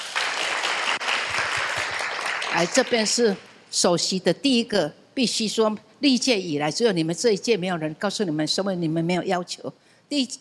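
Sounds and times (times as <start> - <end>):
gathering at a Buddhist temple applauding: 0.0 - 3.4
speech: 2.5 - 10.3.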